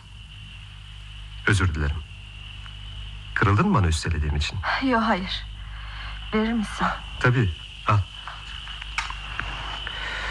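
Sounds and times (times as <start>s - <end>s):
crickets chirping at night: 0.0s - 10.3s
speech: 1.4s - 2.1s, 3.4s - 5.5s, 6.3s - 8.1s.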